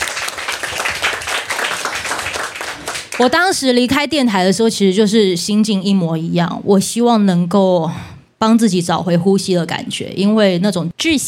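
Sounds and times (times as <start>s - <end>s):
audience applause: 0.0s - 3.3s
speech: 3.2s - 11.2s.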